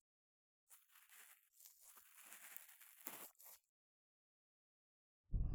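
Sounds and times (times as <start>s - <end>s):
ear cleaning ASMR role-play in right ear: 0.9s - 3.6s.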